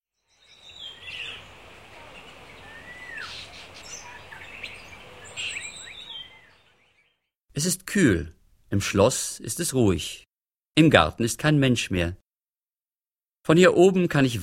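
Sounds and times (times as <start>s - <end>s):
birds singing at early morning: 0.2s - 7.3s
speech: 7.6s - 12.2s, 13.5s - 14.4s.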